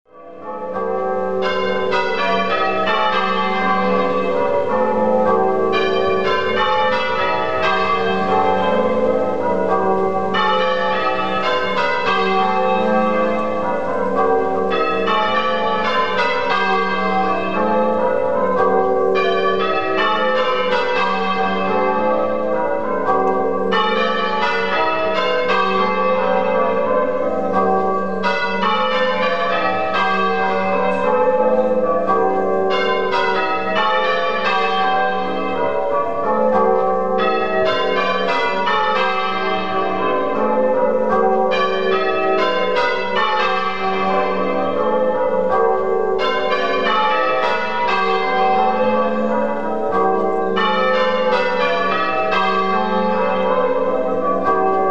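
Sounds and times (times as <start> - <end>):
half-muffled tower bells: 0.1 - 54.8.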